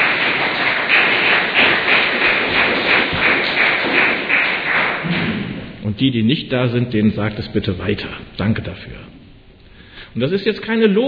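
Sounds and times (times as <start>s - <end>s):
crowd applause: 0.0s - 5.8s
speech: 6.0s - 9.2s, 10.1s - 11.0s.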